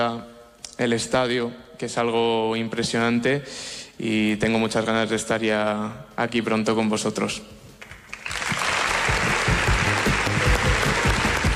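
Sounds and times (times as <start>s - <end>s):
speech: 0.0s - 7.6s
stadium crowd applause: 7.8s - 11.5s.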